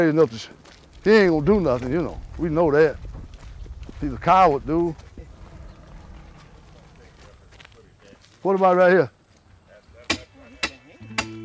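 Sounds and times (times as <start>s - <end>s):
speech: 0.0s - 3.2s, 4.0s - 5.1s, 8.4s - 9.2s
men hammering a sign into the ground: 10.0s - 11.4s.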